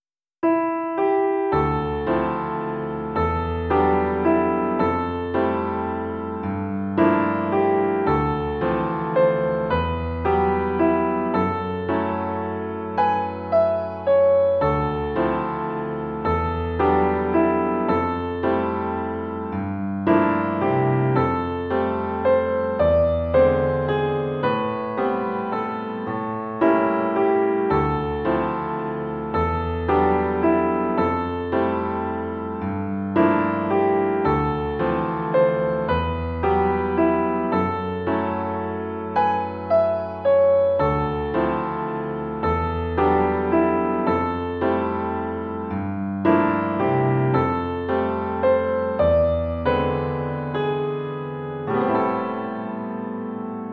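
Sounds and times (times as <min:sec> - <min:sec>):
instrumental music: 0:00.0 - 0:53.7.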